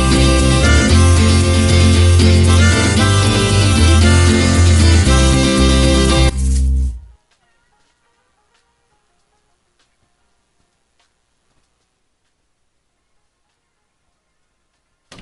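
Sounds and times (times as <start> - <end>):
folk punk music: 0.0 - 9.5.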